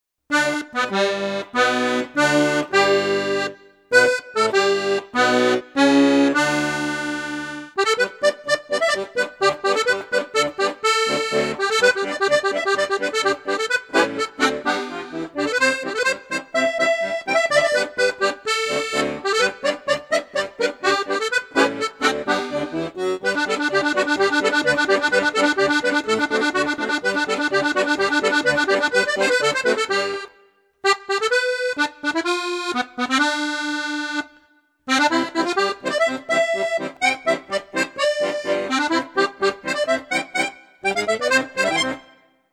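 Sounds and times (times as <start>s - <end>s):
accordion on high flute register: 0.3s - 42.5s.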